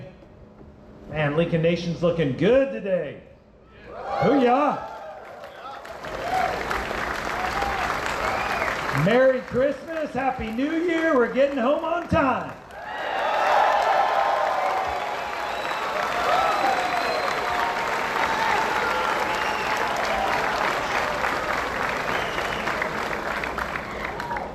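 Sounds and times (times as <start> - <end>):
speech: 1.1 - 3.3, 4.0 - 4.9, 9.0 - 12.6
crowd cheering: 3.8 - 11.2, 12.6 - 24.5.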